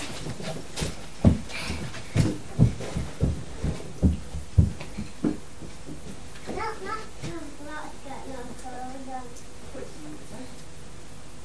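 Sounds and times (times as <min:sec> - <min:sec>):
heartbeat thumps through a toy stethoscope: 0:00.3 - 0:04.8
child chattering: 0:06.5 - 0:08.4.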